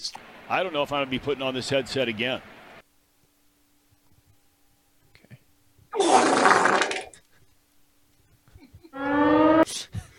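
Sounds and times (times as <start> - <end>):
speech: 0.0 - 2.6
huge wet fart sound effect: 6.0 - 7.2
buzzy horn-like tone: 9.0 - 9.7.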